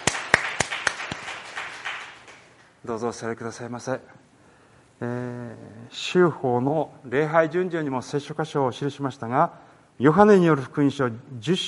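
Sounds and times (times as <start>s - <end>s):
church congregation applauding during a worship service: 0.0s - 2.7s
speech: 2.8s - 4.3s, 5.0s - 11.6s.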